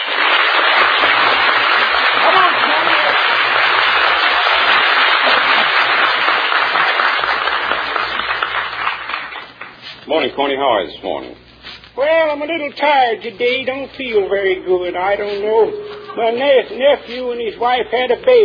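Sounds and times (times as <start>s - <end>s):
studio audience cheering and applauding: 0.0s - 9.5s
speech: 10.3s - 11.4s, 12.0s - 18.4s.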